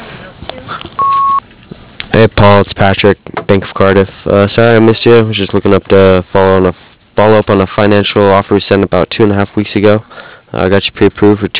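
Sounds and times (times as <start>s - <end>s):
voicemail beep: 1.0s - 1.4s
speech: 2.2s - 11.5s.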